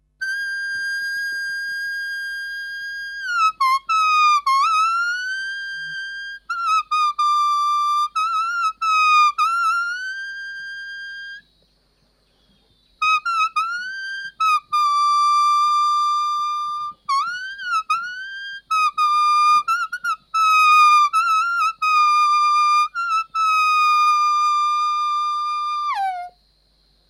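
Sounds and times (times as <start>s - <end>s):
leaf played as a vibrating reed: 0.0s - 27.0s.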